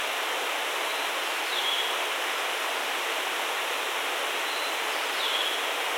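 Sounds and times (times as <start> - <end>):
forest ambience: 0.2 - 5.9.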